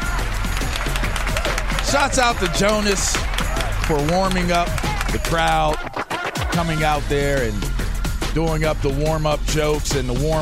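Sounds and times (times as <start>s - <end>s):
hand clapping: 0.0s - 6.8s
speech: 1.9s - 3.3s, 3.9s - 7.7s, 8.4s - 10.4s.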